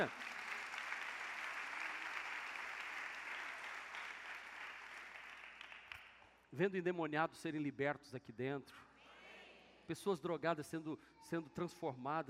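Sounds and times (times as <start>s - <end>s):
speech: 0.0s - 0.2s, 6.5s - 8.9s, 9.9s - 12.2s
audience applause: 0.0s - 6.0s.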